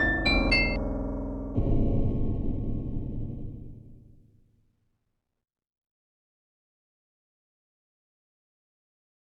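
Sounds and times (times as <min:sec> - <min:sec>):
irritating piano miniature: 0:00.0 - 0:04.3.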